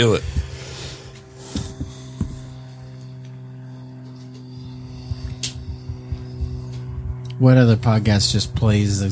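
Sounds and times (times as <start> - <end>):
speech: 0.0 - 0.4, 7.4 - 9.0
Cessna light aircraft flying overhead: 0.0 - 9.0.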